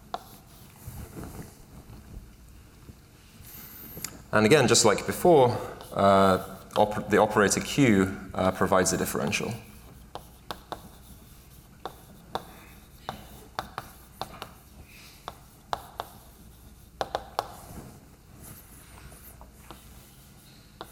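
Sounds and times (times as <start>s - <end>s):
writing on a board while drawing a Hilbert space diagram: 0.0s - 0.8s, 5.0s - 7.8s, 8.5s - 17.8s, 18.5s - 20.9s
speech: 4.3s - 9.7s.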